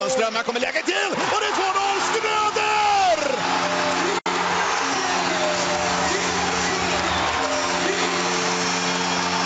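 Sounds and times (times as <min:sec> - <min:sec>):
arena crowd cheering after a goal at Gälleräven Center: 0:00.0 - 0:09.4
speech: 0:00.1 - 0:03.8.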